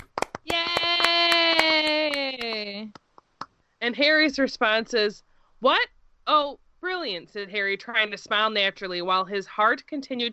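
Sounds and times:
hands clapping in a steady beat: 0.0 - 3.5
speech: 3.9 - 10.3.

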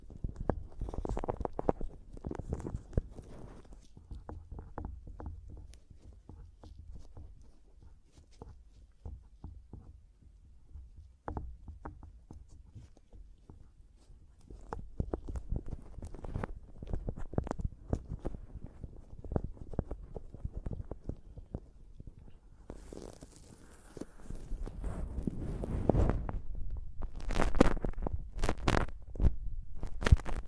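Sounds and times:
microphone scratching: 0.0 - 5.6, 14.4 - 30.4
microphone tapping: 0.0 - 30.4.

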